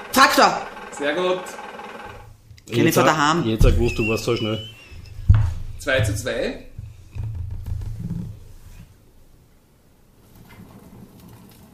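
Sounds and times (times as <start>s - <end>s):
speech: 0.2s - 1.6s, 2.7s - 4.7s, 5.8s - 6.7s
crackling campfire: 10.2s - 11.7s.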